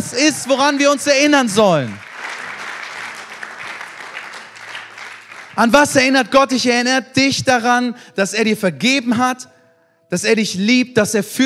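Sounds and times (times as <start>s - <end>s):
audience applause: 0.0s - 6.1s
speech: 0.1s - 2.0s, 5.6s - 11.4s.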